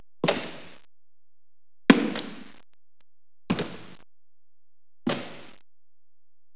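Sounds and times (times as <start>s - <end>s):
boots: 0.2s - 0.8s, 1.9s - 2.6s, 3.5s - 4.0s, 5.1s - 5.6s.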